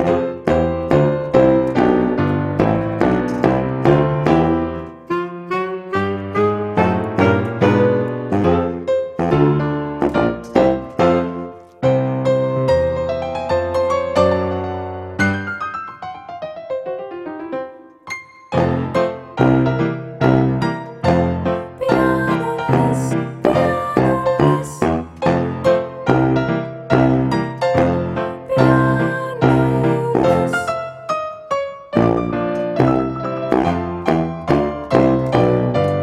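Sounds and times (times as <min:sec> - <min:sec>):
karaoke player piano: 0:00.0 - 0:36.0.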